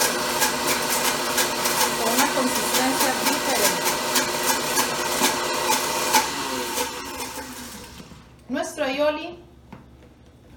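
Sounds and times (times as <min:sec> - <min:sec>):
blender slowing as sauce thickens: 0:00.0 - 0:08.4
speech: 0:09.0 - 0:09.4.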